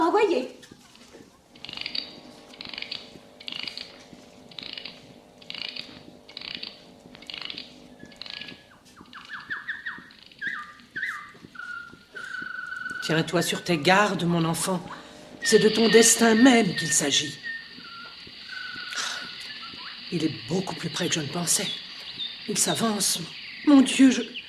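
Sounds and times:
mechanical stuffed bird automaton whirring hum: 0:00.0 - 0:24.4
mechanical stuffed bird automaton rhythmic ratcheting bursts: 0:00.7 - 0:23.7
mechanical stuffed bird automaton in cage chirping whistles: 0:05.6 - 0:13.2, 0:15.4 - 0:24.4
speech: 0:13.1 - 0:17.5, 0:20.1 - 0:21.8, 0:22.5 - 0:24.4.

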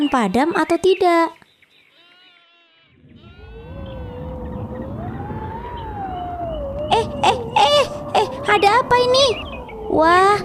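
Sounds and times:
speech: 0:00.0 - 0:01.4, 0:08.5 - 0:10.4
strong wind howling: 0:02.9 - 0:10.4.

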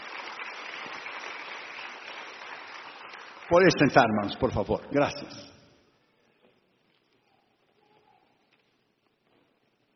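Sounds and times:
audience applauding: 0:00.0 - 0:04.7
speech: 0:03.5 - 0:05.5.

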